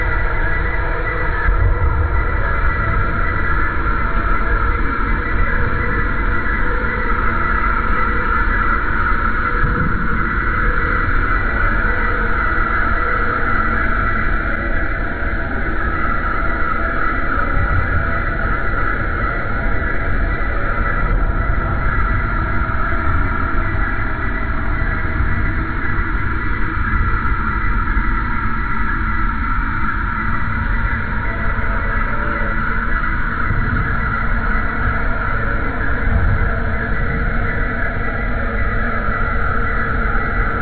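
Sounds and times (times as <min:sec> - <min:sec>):
crickets chirping: 0:00.0 - 0:40.6.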